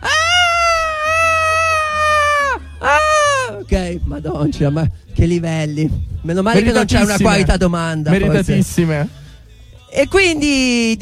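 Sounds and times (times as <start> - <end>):
person imitating a seagull cry: 0.0 - 3.6
speech: 3.7 - 9.2, 9.9 - 11.0.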